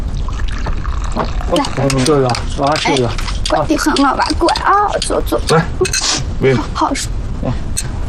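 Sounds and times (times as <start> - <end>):
water poured in a steady stream: 0.1 - 2.7
speech: 1.5 - 8.0.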